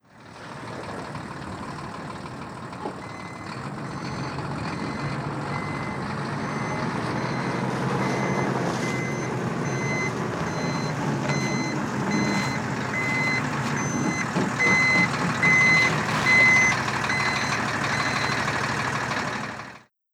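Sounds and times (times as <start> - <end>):
truck in Hamburg: 0.0 - 20.0.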